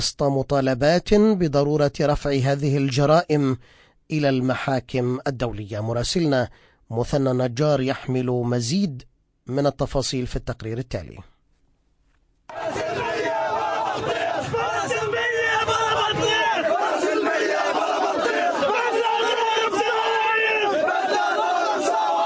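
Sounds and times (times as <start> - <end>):
speech: 0.0 - 11.3
large crowd of mourners crying out at a funeral procession: 12.5 - 22.2.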